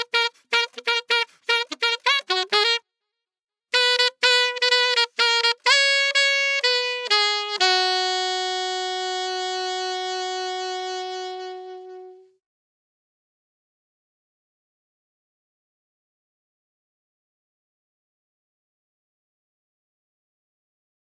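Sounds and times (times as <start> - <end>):
solo saxophone playing a Christmas tune: 0.0 - 2.9, 3.7 - 12.4.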